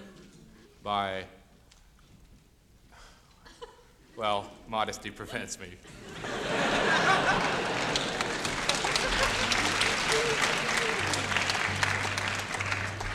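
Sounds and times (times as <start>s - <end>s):
laughter: 5.3s - 13.1s
small orchestra playing a quodlibet: 8.8s - 13.1s.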